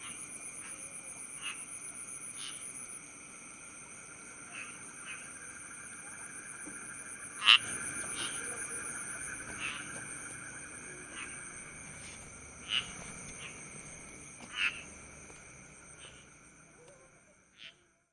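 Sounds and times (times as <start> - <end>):
insects: 0.0 - 18.1
toads calling: 1.4 - 1.7, 2.3 - 2.7, 4.4 - 17.9.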